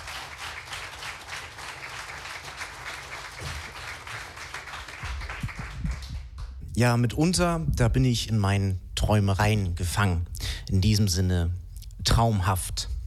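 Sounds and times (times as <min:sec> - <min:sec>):
audience applause: 0:00.0 - 0:06.6
speech: 0:06.8 - 0:12.9.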